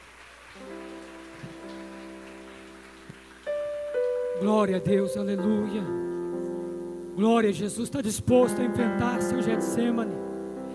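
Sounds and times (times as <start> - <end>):
audience clapping hands: 0.0 - 4.2
speech: 4.4 - 6.1, 7.2 - 10.3.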